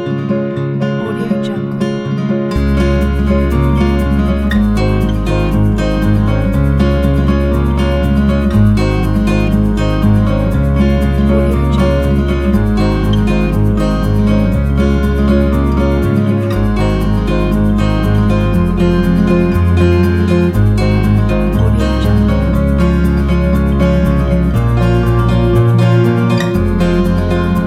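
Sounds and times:
happy mellow music: 0:00.1 - 0:27.6.

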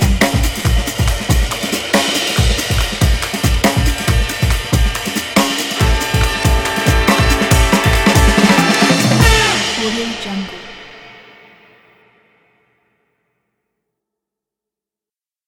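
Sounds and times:
fast jazz intro: 0:00.1 - 0:10.9.

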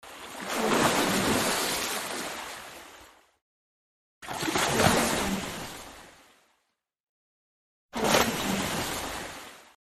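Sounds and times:
water splash: 0:00.2 - 0:02.5, 0:04.2 - 0:06.1, 0:08.0 - 0:09.8.

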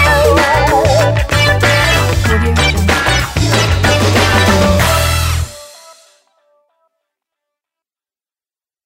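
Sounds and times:
funk music: 0:00.0 - 0:06.2.

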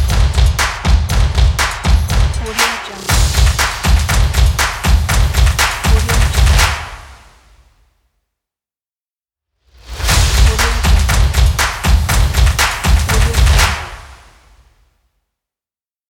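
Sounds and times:
drum logo: 0:00.0 - 0:07.1, 0:09.9 - 0:14.3.

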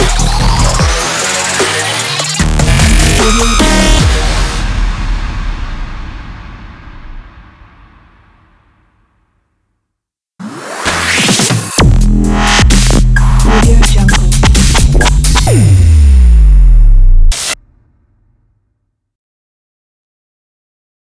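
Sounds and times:
music logo: 0:00.0 - 0:07.5, 0:10.5 - 0:17.6.

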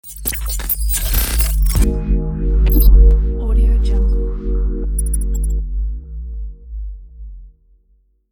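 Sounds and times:
glitchy logo sound: 0:00.0 - 0:05.6.

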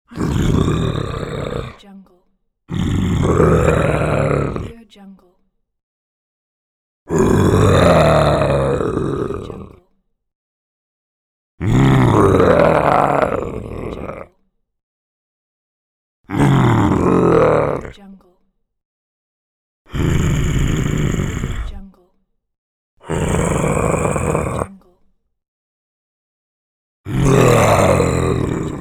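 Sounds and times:
monster growling: 0:00.1 - 0:01.8, 0:02.7 - 0:04.8, 0:07.1 - 0:09.8, 0:11.6 - 0:14.3, 0:16.3 - 0:18.0, 0:19.9 - 0:21.8, 0:23.0 - 0:24.8, 0:27.1 - 0:28.7.

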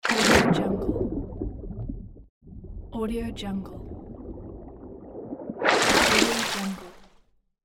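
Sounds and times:
object submerging in and emerging from water: 0:00.1 - 0:07.2.

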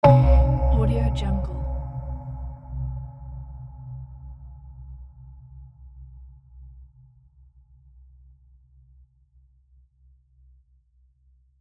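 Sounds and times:
impact effect: 0:00.0 - 0:02.4.

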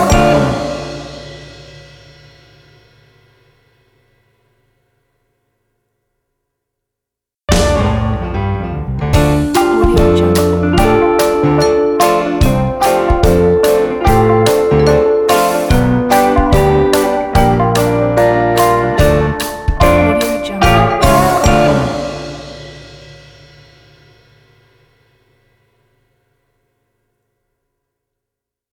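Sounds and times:
uplifting blues music: 0:00.0 - 0:01.3, 0:07.5 - 0:22.8.

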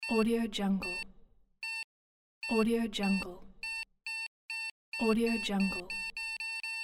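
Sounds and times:
heart monitor beeping: 0:00.8 - 0:01.0, 0:01.6 - 0:06.8.

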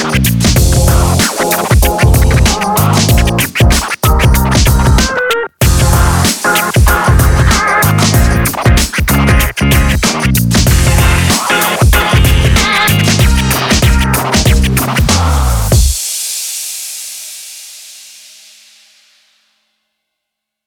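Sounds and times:
upbeat summer hip hop music: 0:00.0 - 0:15.9.

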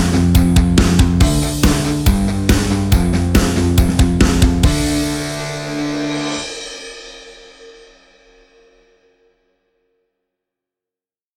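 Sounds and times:
powerful punk rock: 0:00.0 - 0:07.4.

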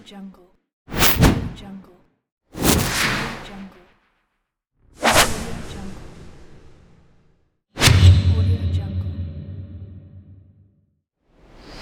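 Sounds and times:
double whoosh: 0:00.9 - 0:01.6, 0:02.6 - 0:03.3, 0:07.8 - 0:10.3.

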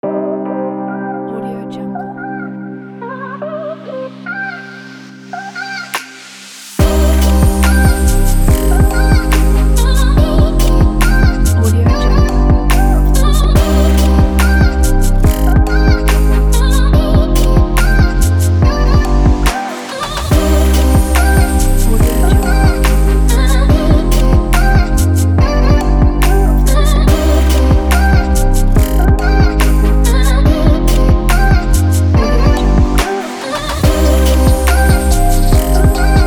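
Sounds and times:
inspiring fashion vocal beat: 0:05.4 - 0:36.2.

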